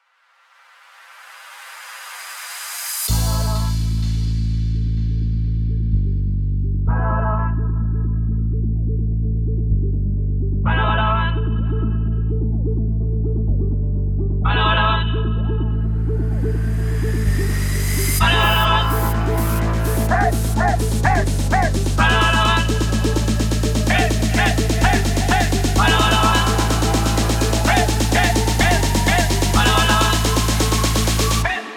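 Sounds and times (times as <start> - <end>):
intro and outro music at 124 BPM: 1.2 - 6.9, 7.6 - 31.7.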